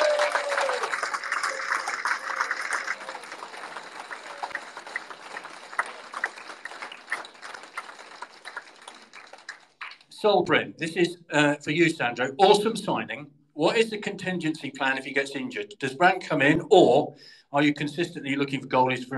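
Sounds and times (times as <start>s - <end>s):
audience round of applause: 0.0s - 10.1s
speech: 10.2s - 19.1s.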